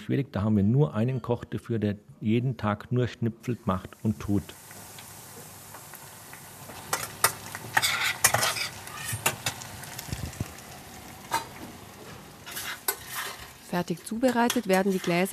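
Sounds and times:
speech: 0.0s - 4.6s, 13.7s - 15.3s
vegetables sautéing in a pan: 3.6s - 15.3s.

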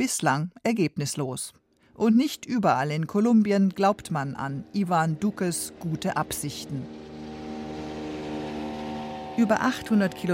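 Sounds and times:
speech: 0.0s - 7.0s, 9.4s - 10.3s
speedboat engine on the Rio Atrato: 3.2s - 10.3s.

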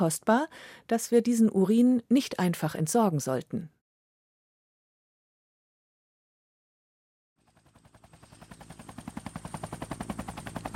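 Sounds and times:
speech: 0.0s - 3.8s
approaching helicopter rotor chop: 7.4s - 10.7s.

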